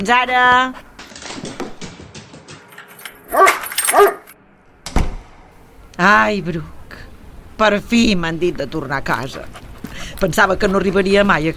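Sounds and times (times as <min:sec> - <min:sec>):
speech: 0:00.0 - 0:00.9, 0:03.3 - 0:04.2, 0:06.0 - 0:06.8, 0:07.6 - 0:09.6, 0:10.2 - 0:11.5
dog barking: 0:03.3 - 0:04.4.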